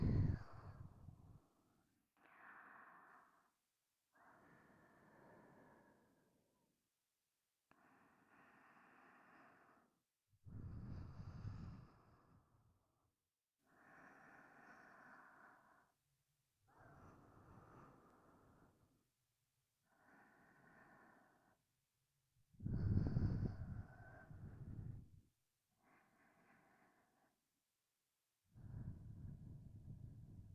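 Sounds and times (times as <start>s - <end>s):
person breathing in sleep in the right ear: 0.0s - 1.2s, 2.2s - 6.4s, 7.7s - 9.9s, 10.5s - 12.5s, 13.7s - 16.0s, 19.9s - 21.6s, 22.6s - 25.1s, 25.8s - 27.4s, 28.6s - 30.5s.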